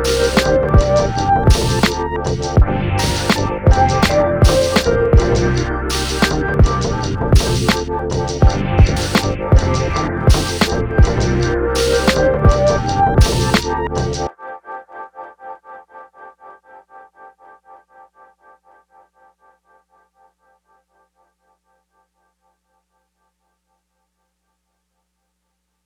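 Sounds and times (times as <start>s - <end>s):
vintage MPC sampler beat: 0.0s - 14.3s.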